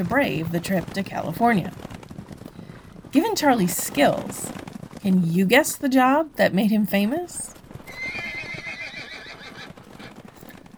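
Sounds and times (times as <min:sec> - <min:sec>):
speech: 0:00.0 - 0:01.8, 0:03.1 - 0:07.5
stagecoach horses' hooves clip-clopping: 0:00.0 - 0:10.7
horse whinny: 0:07.9 - 0:10.3.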